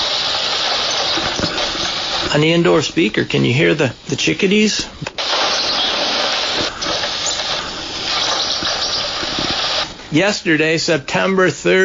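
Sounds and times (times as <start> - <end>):
drizzling rain: 0.0 - 4.2, 5.0 - 10.4
speech: 2.4 - 5.1, 10.1 - 11.8.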